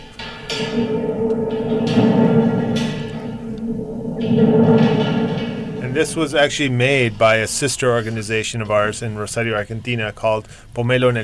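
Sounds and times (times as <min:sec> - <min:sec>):
tormenta thunderstorm instrument being played: 0:00.0 - 0:06.8
speech: 0:00.6 - 0:01.4, 0:06.0 - 0:11.2.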